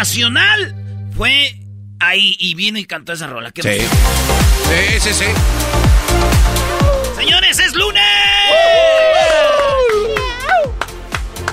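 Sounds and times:
speech: 0.0s - 6.6s, 7.2s - 9.0s
crowd screaming: 6.6s - 7.3s, 8.0s - 10.8s.

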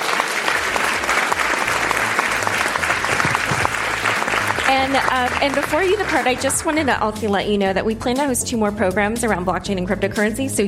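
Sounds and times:
audience applause: 0.0s - 6.9s
speech: 4.8s - 10.6s.

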